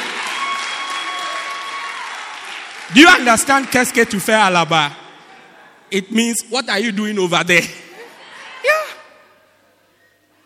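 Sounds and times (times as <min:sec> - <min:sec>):
audience clapping: 0:00.0 - 0:04.6
speech: 0:02.9 - 0:05.0, 0:05.9 - 0:07.8.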